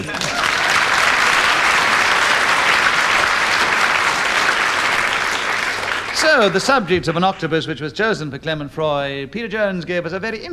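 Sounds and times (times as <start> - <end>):
audience applause: 0.0 - 7.5
speech: 6.3 - 10.5.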